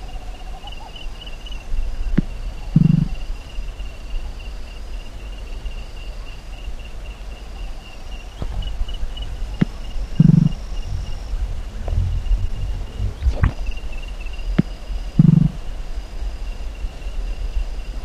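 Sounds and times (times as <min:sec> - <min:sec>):
high-pitched insect hum: 0:00.0 - 0:18.0
white-winged nightjar giving buzzing notes: 0:08.4 - 0:15.7.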